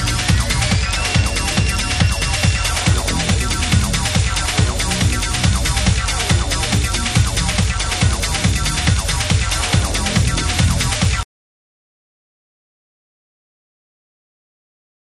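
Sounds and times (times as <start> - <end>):
machine music: 0.0 - 11.2.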